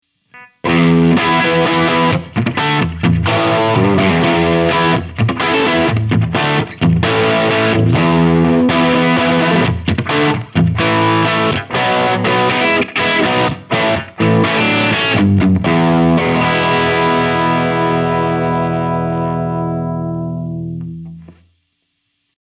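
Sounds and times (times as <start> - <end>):
electric guitar through Sound City Master One Hundred amp with humbucker: 0.3 - 21.5.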